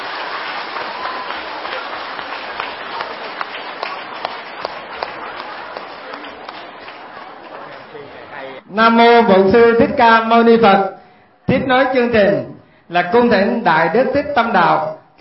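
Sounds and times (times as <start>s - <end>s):
long loud applause: 0.0s - 8.6s
speech: 8.8s - 15.1s.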